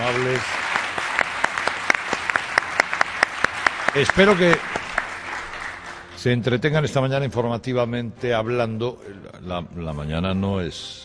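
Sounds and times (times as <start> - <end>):
applause from a large crowd of ten to twelve thousand people: 0.0 - 6.2
speech: 0.2 - 0.7, 3.9 - 4.8, 6.2 - 11.0.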